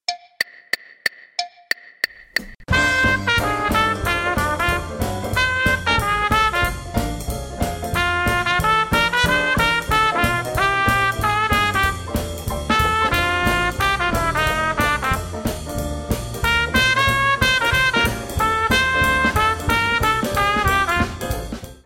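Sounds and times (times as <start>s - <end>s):
trumpet: 2.7s - 21.8s.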